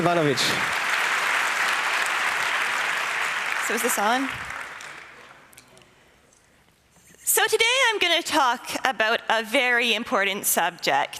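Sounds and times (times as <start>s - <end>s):
speech: 0.0s - 0.8s, 3.7s - 4.5s, 7.4s - 11.1s
conference audience applauding a speaker: 0.0s - 5.5s.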